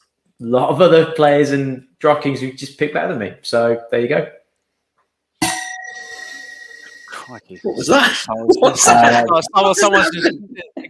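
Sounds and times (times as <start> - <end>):
speech: 0.4 - 4.4, 7.3 - 10.8
bell strike marking end of round: 5.4 - 7.3
laughter: 7.2 - 10.8.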